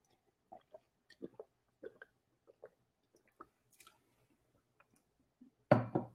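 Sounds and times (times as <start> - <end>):
person sipping water: 0.0 - 4.1.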